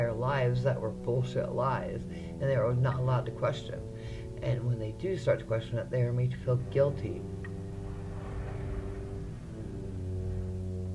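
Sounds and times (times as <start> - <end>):
speech: 0.2 - 7.4
car driving by outside, rumbling: 6.6 - 10.9.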